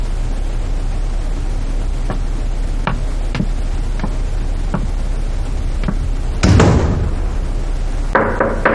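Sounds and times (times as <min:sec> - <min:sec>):
steady hiss: 0:00.0 - 0:08.7
knocking on a door: 0:02.9 - 0:05.0, 0:05.8 - 0:07.2, 0:08.1 - 0:08.7.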